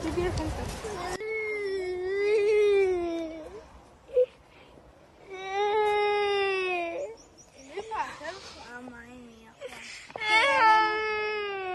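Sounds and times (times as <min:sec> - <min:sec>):
speech: 0:00.2 - 0:01.2
small boy crying over his damaged school in Valencia: 0:01.2 - 0:04.4, 0:05.2 - 0:07.2, 0:09.6 - 0:11.7.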